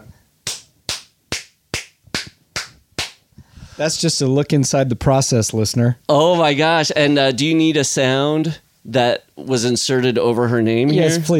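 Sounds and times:
hand claps as editing sync marker: 0:00.4 - 0:03.2
speech: 0:03.8 - 0:11.3.

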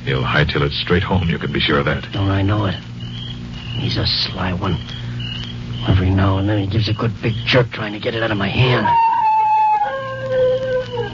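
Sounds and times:
speech: 0:00.1 - 0:02.9, 0:03.8 - 0:05.0, 0:05.8 - 0:09.1
dog howling: 0:08.5 - 0:11.1.

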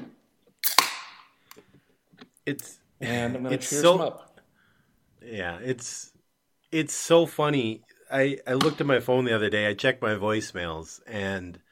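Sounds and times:
beer being opened: 0:00.6 - 0:01.3
speech: 0:02.4 - 0:04.3, 0:05.2 - 0:11.6.

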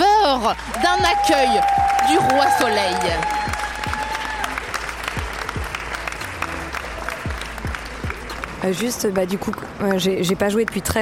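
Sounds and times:
speech: 0:00.4 - 0:03.5, 0:08.6 - 0:11.0
audience applause: 0:00.5 - 0:08.9.

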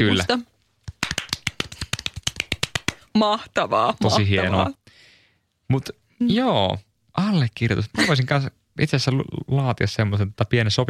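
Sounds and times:
speech: 0:00.0 - 0:00.5, 0:03.2 - 0:04.8, 0:05.7 - 0:10.8
small group clapping: 0:00.8 - 0:03.1.

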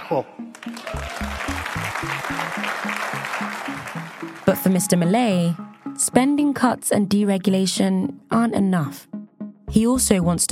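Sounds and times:
speech: 0:00.1 - 0:02.6, 0:04.7 - 0:09.1, 0:09.7 - 0:10.5
enthusiastic applause: 0:00.5 - 0:04.6.

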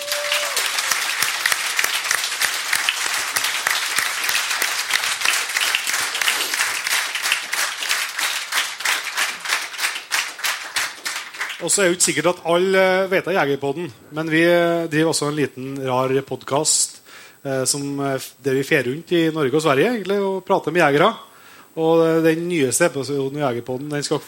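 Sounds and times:
audience applause: 0:00.0 - 0:11.8
speech: 0:11.6 - 0:24.2.

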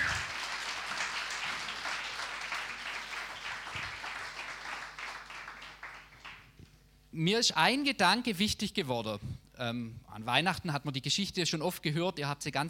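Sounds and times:
audience applause: 0:00.0 - 0:06.5
speech: 0:07.2 - 0:12.6.

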